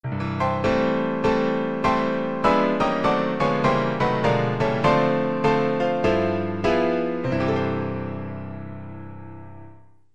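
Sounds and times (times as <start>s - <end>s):
piano: 0.0s - 10.1s.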